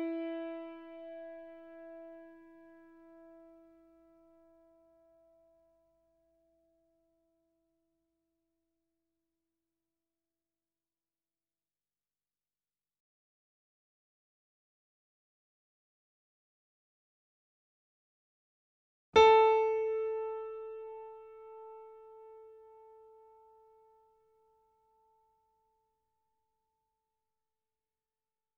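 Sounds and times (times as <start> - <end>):
grand piano and sample piano C4 E4 A4 chord: 0.0 - 3.5, 19.2 - 22.7.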